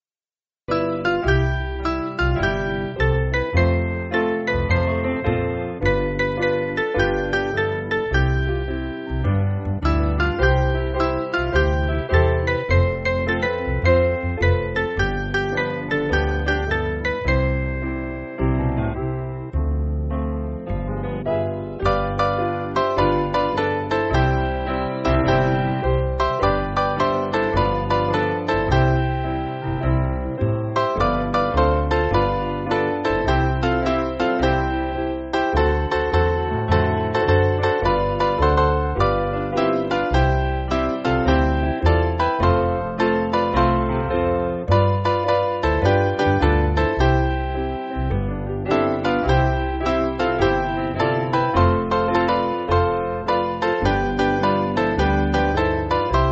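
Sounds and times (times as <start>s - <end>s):
piano: 0.7s - 56.3s.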